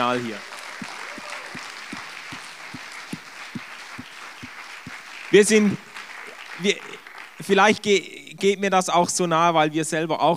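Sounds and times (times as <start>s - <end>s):
speech: 0.0s - 0.9s, 5.3s - 5.9s, 6.6s - 10.3s
audience applause: 0.0s - 7.8s.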